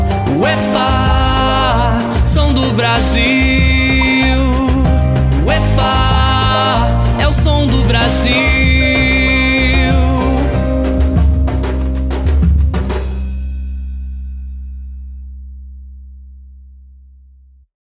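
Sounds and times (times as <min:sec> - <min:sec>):
Afro rhythm: 0:00.0 - 0:14.1.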